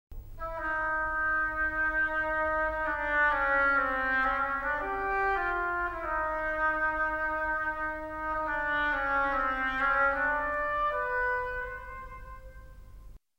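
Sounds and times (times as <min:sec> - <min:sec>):
oboe: 0:00.4 - 0:13.2.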